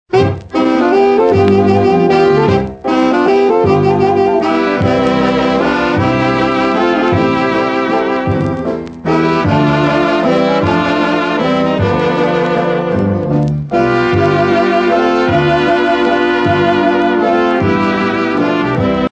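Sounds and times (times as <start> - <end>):
waltz music: 0.1 - 19.1.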